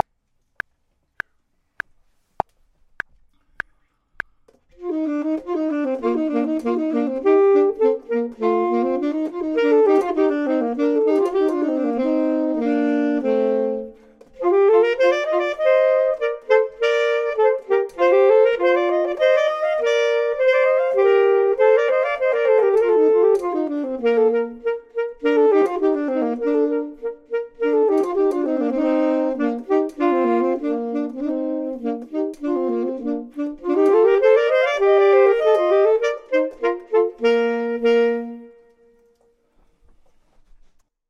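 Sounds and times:
saxophone: 4.6 - 40.1
clarinet: 4.7 - 40.7.

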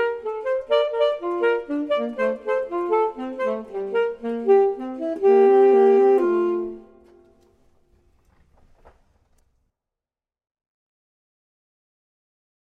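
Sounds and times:
saxophone: 0.0 - 7.6
clarinet: 0.0 - 7.7.

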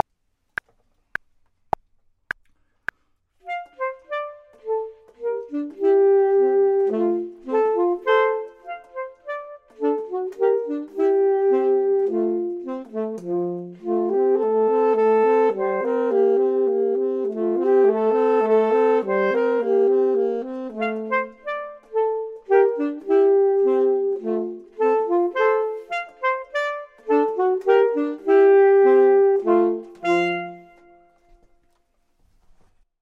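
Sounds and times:
saxophone: 3.4 - 31.8
clarinet: 3.4 - 32.0.

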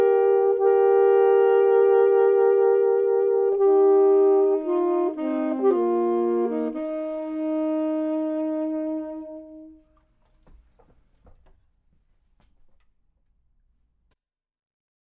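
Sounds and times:
clarinet: 0.0 - 10.0
saxophone: 0.0 - 10.0.

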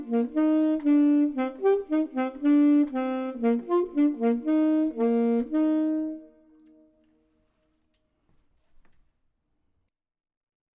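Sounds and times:
clarinet: 0.0 - 7.0
saxophone: 0.0 - 7.1.

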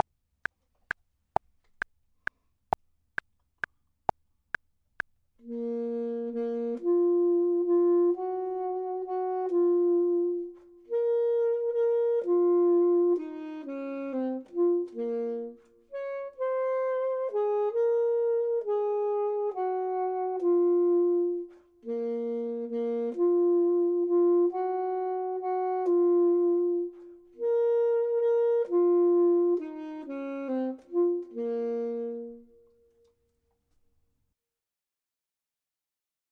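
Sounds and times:
saxophone: 5.4 - 33.2
clarinet: 5.4 - 33.3.

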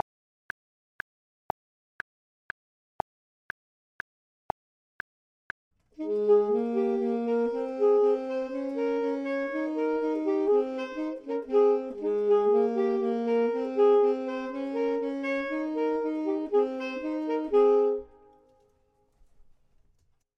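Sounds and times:
saxophone: 6.0 - 18.6
clarinet: 6.0 - 18.7.

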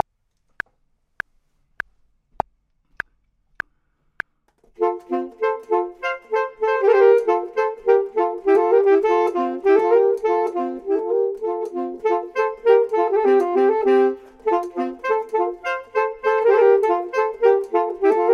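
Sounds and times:
clarinet: 4.8 - 18.3
saxophone: 4.8 - 18.3.

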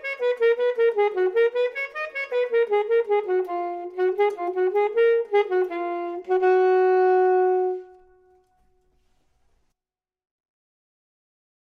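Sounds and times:
saxophone: 0.0 - 9.0
clarinet: 0.0 - 9.2.

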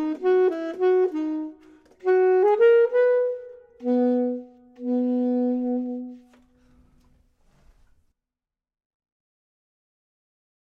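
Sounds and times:
clarinet: 0.0 - 6.8
saxophone: 0.0 - 6.8.

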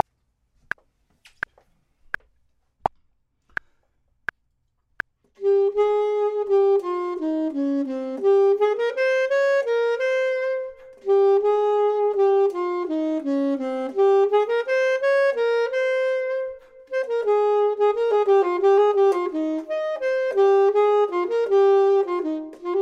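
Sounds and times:
clarinet: 5.4 - 22.7
saxophone: 5.4 - 22.7.

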